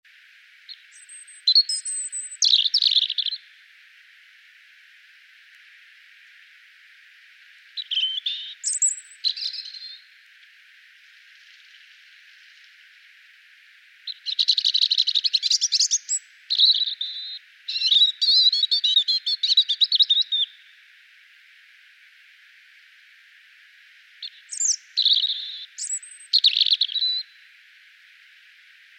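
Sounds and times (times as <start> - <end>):
European robin singing: 0.7 - 3.5, 7.7 - 10.2, 14.1 - 20.7, 24.2 - 27.4.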